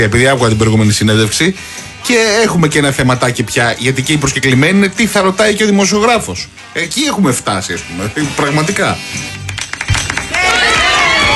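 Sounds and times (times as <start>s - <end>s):
speech: 0.0s - 10.0s
group applause: 9.5s - 11.3s.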